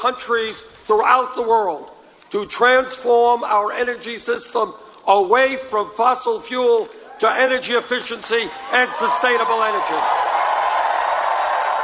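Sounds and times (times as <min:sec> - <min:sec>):
speech: 0:00.0 - 0:10.3
crowd cheering: 0:06.9 - 0:11.8.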